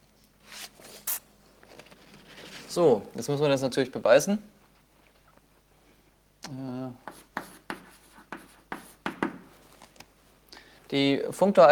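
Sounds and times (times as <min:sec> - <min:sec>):
speech: 0:02.8 - 0:04.6, 0:10.9 - 0:11.6
writing on a board during a lecture: 0:07.0 - 0:09.6.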